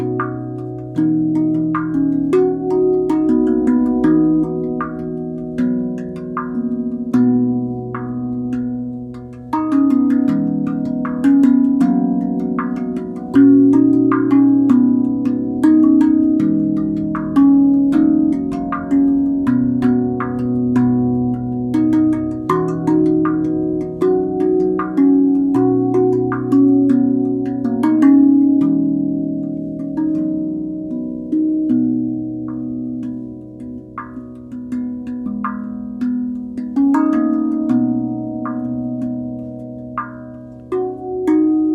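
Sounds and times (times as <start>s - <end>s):
rav vast steel tongue drum in B major: 0.0s - 41.7s.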